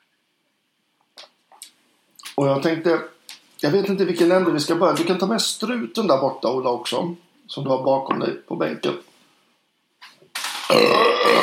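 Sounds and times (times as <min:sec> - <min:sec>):
speech: 0:02.4 - 0:09.1, 0:10.7 - 0:11.4
loud drawn-out burp: 0:10.5 - 0:11.4.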